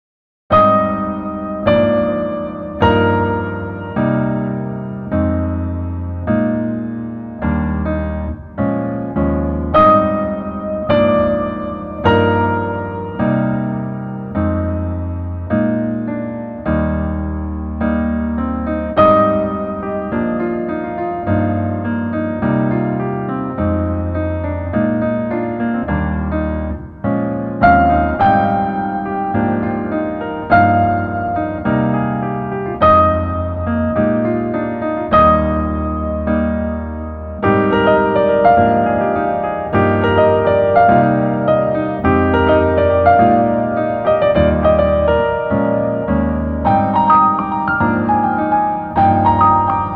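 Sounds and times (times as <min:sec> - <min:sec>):
piano melody backing track: 0:00.5 - 0:49.9.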